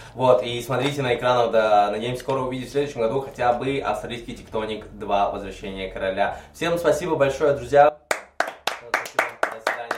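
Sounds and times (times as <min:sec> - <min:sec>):
speech: 0:00.2 - 0:08.0
applause: 0:08.1 - 0:09.9.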